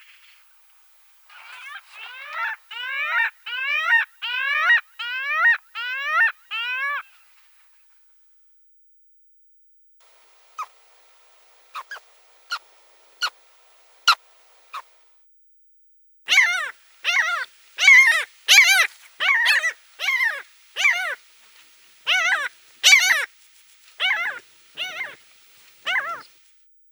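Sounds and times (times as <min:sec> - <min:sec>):
Arctic skua wailing mewing calls: 0:01.3 - 0:07.4, 0:10.1 - 0:15.0, 0:16.3 - 0:23.3, 0:24.0 - 0:26.4.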